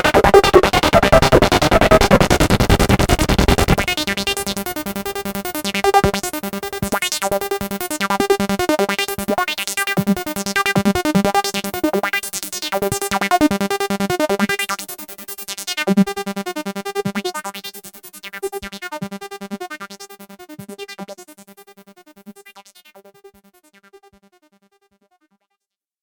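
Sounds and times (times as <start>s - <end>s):
synth with dual filter LFO at high speed: 0.0s - 15.1s.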